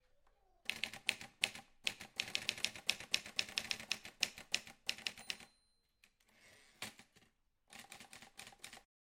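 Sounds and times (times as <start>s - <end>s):
typewriter typing: 0.7s - 5.5s, 7.7s - 8.9s
typewriter bell ting: 5.0s - 5.9s.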